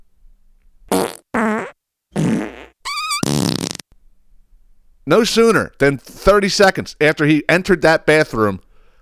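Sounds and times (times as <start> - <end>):
loud sputtering farts: 0.9 - 3.8
speech: 5.1 - 8.6.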